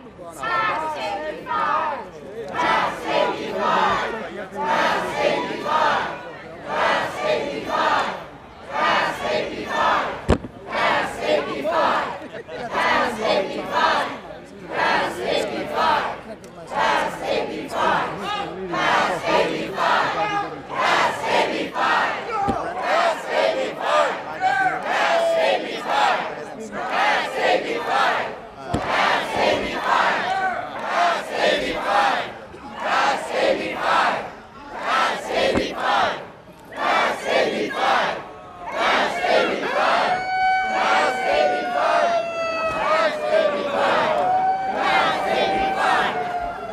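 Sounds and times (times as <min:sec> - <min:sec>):
chanting: 0:00.4 - 0:46.7.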